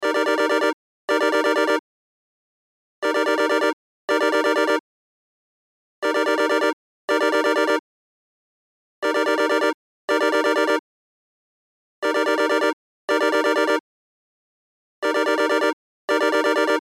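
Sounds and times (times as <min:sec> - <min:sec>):
cell phone ringtone: 0:00.0 - 0:01.8, 0:03.0 - 0:04.8, 0:06.0 - 0:07.8, 0:09.0 - 0:10.8, 0:12.0 - 0:13.8, 0:15.0 - 0:16.8.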